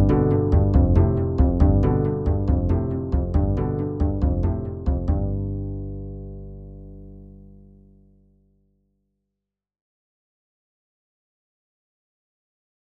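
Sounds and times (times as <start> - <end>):
backing track in C major: 0.0 - 6.3.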